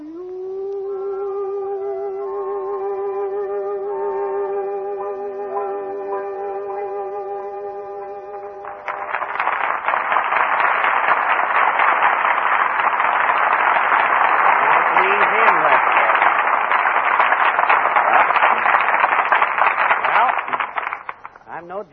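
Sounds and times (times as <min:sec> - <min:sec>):
sustained tonal musical passage: 0:00.3 - 0:08.9
large audience applause: 0:08.6 - 0:21.5.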